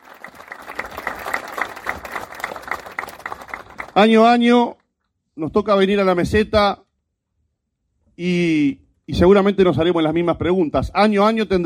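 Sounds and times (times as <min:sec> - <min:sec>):
audience applause at a gathering in Paysandú: 0:00.0 - 0:04.2
speech: 0:04.0 - 0:04.8, 0:05.4 - 0:06.8, 0:08.2 - 0:11.6.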